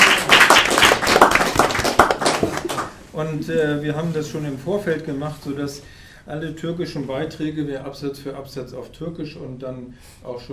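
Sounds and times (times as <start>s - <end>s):
audience applause: 0.0s - 3.0s
speech: 3.2s - 10.5s.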